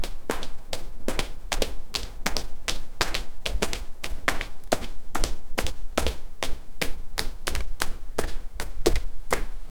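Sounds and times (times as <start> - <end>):
young child running on wet concrete: 0.0 - 9.7.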